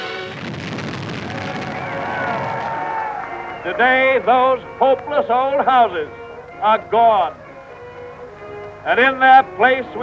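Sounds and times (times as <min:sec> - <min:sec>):
demolition blast clearing old houses for a housing project: 0:00.0 - 0:03.4
speech: 0:03.6 - 0:07.4, 0:08.8 - 0:10.0.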